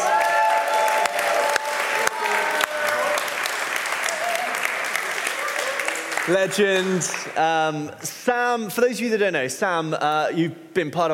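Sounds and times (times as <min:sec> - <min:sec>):
audience round of applause: 0:00.0 - 0:07.4
speech: 0:06.3 - 0:11.1.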